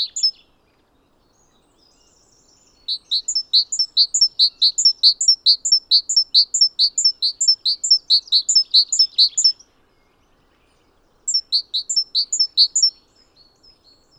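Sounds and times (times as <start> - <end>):
great tit song: 0.0 - 0.3, 2.4 - 9.6, 11.3 - 13.0
speech: 4.0 - 9.8, 11.6 - 12.8.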